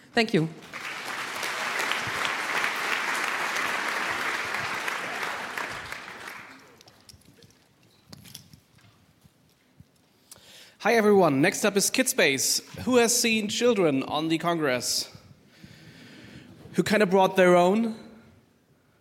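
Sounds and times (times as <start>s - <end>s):
speech: 0.2s - 0.8s, 10.8s - 15.2s, 16.8s - 18.0s
audience applause: 0.6s - 6.9s.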